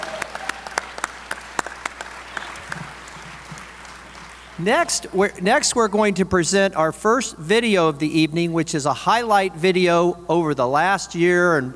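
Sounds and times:
applause: 0.0 - 4.6
speech: 4.6 - 11.7.

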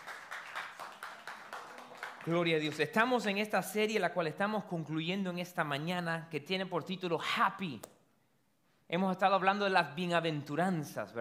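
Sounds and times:
applause: 0.0 - 3.5
speech: 2.3 - 8.0, 8.9 - 11.2.

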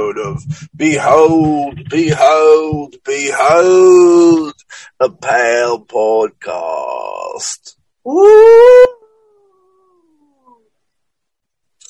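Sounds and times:
speech: 0.0 - 9.0
person howling like a ghoul: 8.1 - 10.1.

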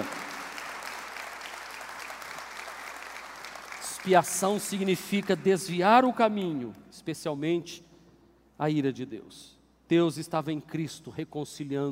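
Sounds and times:
audience applause: 0.0 - 4.9
speech: 4.0 - 7.9, 8.6 - 11.9.

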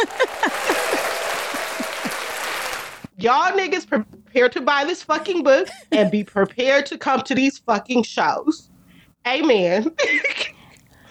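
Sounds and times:
laughter: 0.0 - 3.0, 5.1 - 6.6
audience round of applause: 0.0 - 3.1
speech: 3.2 - 10.5.

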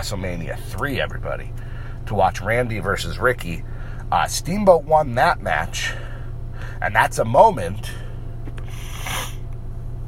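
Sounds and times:
speech: 0.0 - 8.0
steady low hum: 0.0 - 10.0
nasal sniffing: 8.6 - 9.4.

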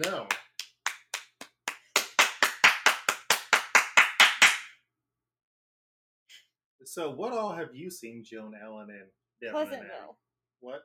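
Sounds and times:
speech: 0.0 - 0.4, 6.8 - 10.8
hand claps: 0.0 - 4.8.

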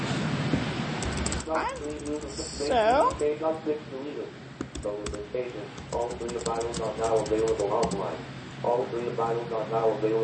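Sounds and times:
computer keyboard keys clacking as a file name is typed: 1.0 - 3.3, 4.6 - 8.1
speech: 1.5 - 10.2.

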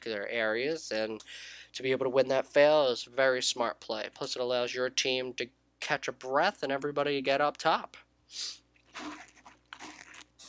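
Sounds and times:
speech: 0.0 - 9.3
person sipping tea: 8.8 - 10.4.

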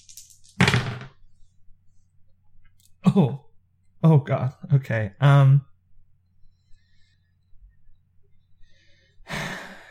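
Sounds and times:
dice being rolled: 0.0 - 1.1
speech: 3.0 - 3.4, 4.0 - 5.7.

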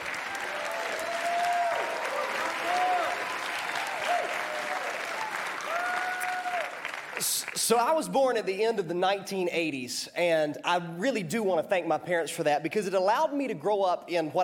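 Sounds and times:
church congregation applauding to welcome a youth pastor: 0.0 - 7.9
speech: 7.7 - 14.4.

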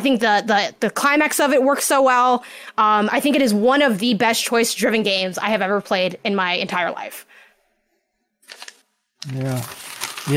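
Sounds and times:
speech: 0.0 - 7.3, 9.2 - 10.3
paper script being ripped up: 8.4 - 10.3.

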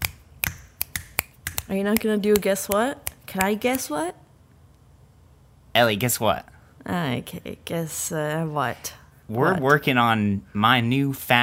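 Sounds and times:
finger snaps made by the middle finger slapping onto the palm: 0.0 - 3.8
speech: 1.7 - 4.2, 5.8 - 11.4.

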